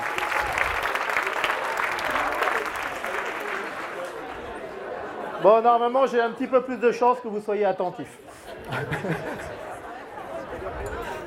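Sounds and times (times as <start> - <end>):
audience applauding: 0.0 - 4.8
laughter: 2.1 - 6.8, 8.2 - 11.2
speech: 5.4 - 9.5.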